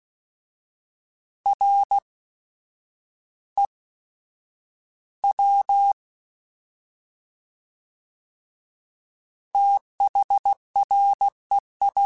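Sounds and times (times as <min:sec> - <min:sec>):
fast CW Morse code groups: 0:01.5 - 0:02.1, 0:05.3 - 0:06.0, 0:09.6 - 0:12.0.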